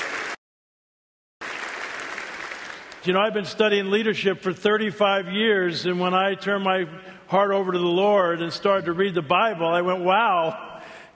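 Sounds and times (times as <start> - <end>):
audience applause welcoming speakers onto a stage: 0.0 - 0.4, 1.4 - 3.0
speech: 3.0 - 10.7.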